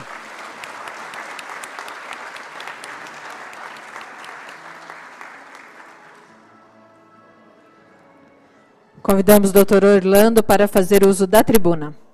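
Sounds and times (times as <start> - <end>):
audience applause: 0.0 - 6.5
speech: 9.1 - 12.0.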